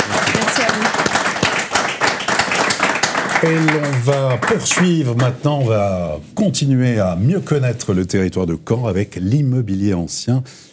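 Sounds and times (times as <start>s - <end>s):
audience applause: 0.0s - 5.3s
speech: 3.4s - 10.7s.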